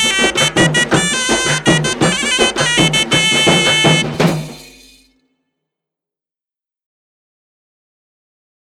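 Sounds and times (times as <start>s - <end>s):
band musical sequence: 0.0s - 5.1s.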